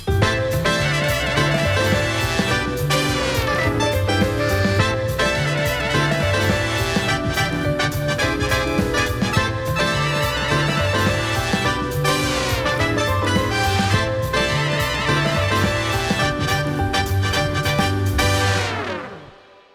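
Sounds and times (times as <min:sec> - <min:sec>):
light swing jazz: 0:00.1 - 0:19.2.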